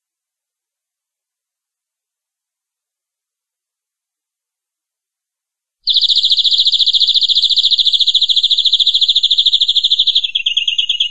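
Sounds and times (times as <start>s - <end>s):
domestic canary giving long rolling song: 5.8s - 11.0s.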